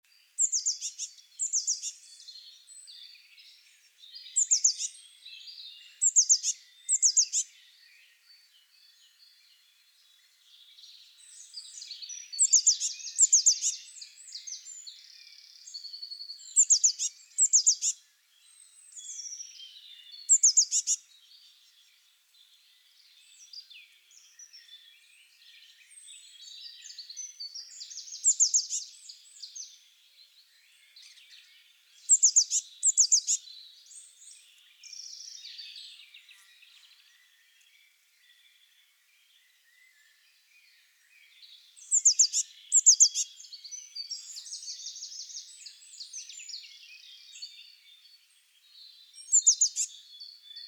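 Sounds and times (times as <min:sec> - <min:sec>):
Cyanistes caeruleus: 0:00.1 - 0:50.6.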